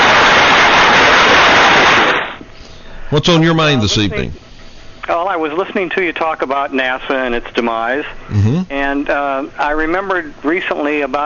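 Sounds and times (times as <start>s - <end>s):
crowd applause: 0.0s - 2.4s
speech: 3.1s - 4.5s, 5.1s - 11.2s.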